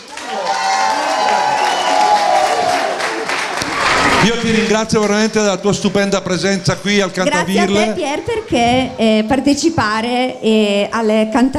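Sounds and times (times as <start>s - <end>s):
crowd cheering and applauding: 0.0s - 4.7s
speech: 4.2s - 11.5s.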